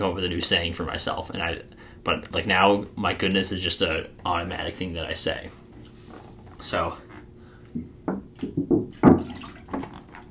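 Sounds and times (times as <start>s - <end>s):
speech: 0.0s - 5.6s, 6.6s - 7.0s
gulps of purified water from a gallon jug: 9.2s - 10.2s.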